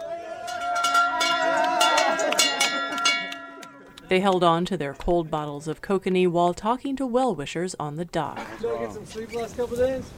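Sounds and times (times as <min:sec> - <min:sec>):
people chattering and calling out: 0:00.0 - 0:09.1
metal dock arrival bell ringing rapidly: 0:00.4 - 0:04.0
speech: 0:04.1 - 0:10.1.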